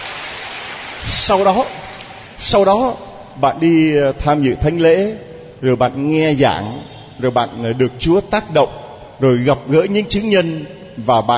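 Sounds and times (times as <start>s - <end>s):
audience applause: 0.0s - 2.3s
speech: 1.3s - 1.8s, 2.4s - 11.3s.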